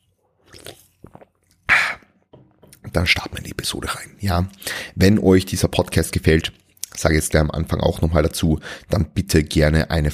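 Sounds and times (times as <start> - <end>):
person sipping a soft drink: 0.1 - 2.8
speech: 2.9 - 10.1.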